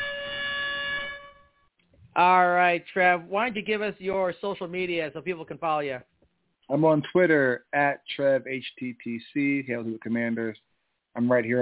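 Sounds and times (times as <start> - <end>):
air horn sound effect: 0.0 - 1.4
speech: 2.2 - 6.1, 6.7 - 11.6.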